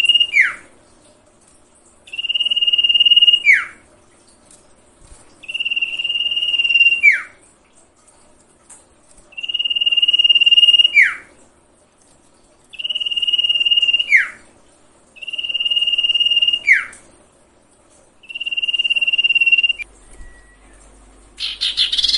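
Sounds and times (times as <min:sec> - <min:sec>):
sirtu cage bird song with buzzy rasping phrases and falling whistled slur: 0:00.0 - 0:00.7, 0:02.1 - 0:03.8, 0:05.4 - 0:07.4, 0:09.3 - 0:11.3, 0:12.7 - 0:14.4, 0:15.2 - 0:17.0, 0:18.2 - 0:22.1.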